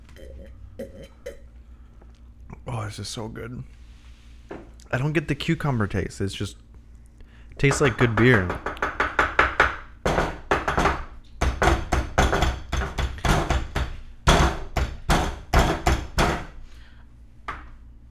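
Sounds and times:
speech: 2.7 - 3.8, 4.9 - 6.6, 7.6 - 8.7
tapping on window glass: 7.6 - 16.6.

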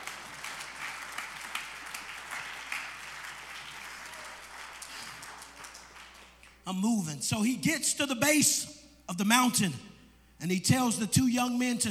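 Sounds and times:
audience clapping: 0.0 - 6.6
speech: 6.7 - 11.8.

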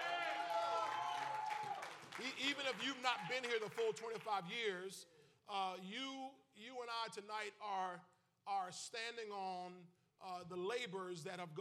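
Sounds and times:
audience hand clapping: 0.0 - 4.5
speech: 2.2 - 11.6.

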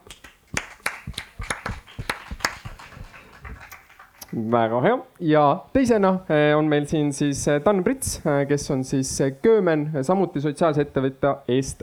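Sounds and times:
small audience applause welcoming a panelist: 0.6 - 4.4
speech: 4.4 - 11.8.

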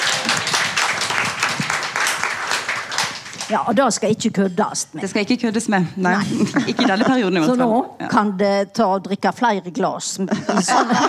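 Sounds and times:
audience applause: 0.0 - 3.5
speech: 3.5 - 11.0
laughter: 6.2 - 7.8, 10.3 - 11.0.

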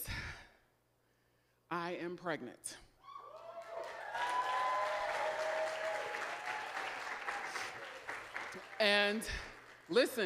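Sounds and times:
speech: 1.7 - 2.9, 8.8 - 10.2
faint whoops and cheers: 3.0 - 8.2
crowd applause in a large room: 3.3 - 10.2.

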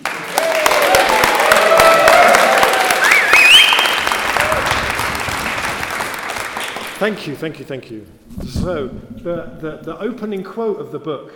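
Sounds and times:
audience cheering: 0.0 - 7.5
speech: 7.0 - 11.3.

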